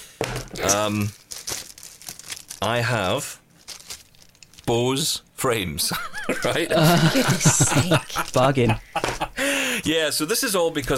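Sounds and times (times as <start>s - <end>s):
speech: 0.5s - 1.2s, 2.6s - 3.4s, 4.7s - 10.9s
parcel packaging being torn open: 0.7s - 2.8s, 3.6s - 4.7s
laughter: 5.9s - 9.8s.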